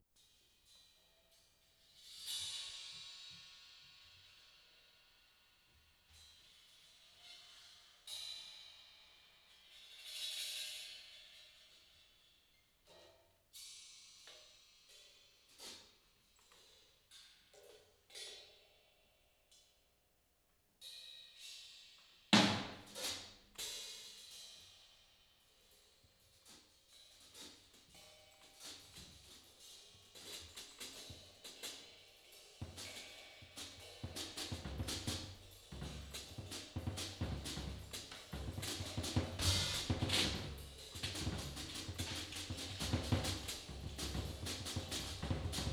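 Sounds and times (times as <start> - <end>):
drums: 1.8 - 12.0, 20.8 - 45.7.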